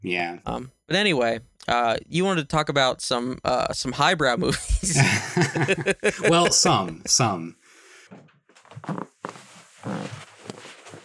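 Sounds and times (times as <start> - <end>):
speech: 0.0 - 7.6, 8.8 - 10.2
laughter: 4.4 - 7.2
floor creaking: 8.1 - 11.0.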